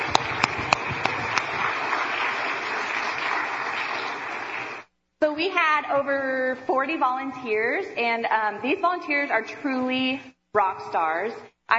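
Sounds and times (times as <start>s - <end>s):
audience applause: 0.0s - 4.9s
speech: 5.4s - 11.7s.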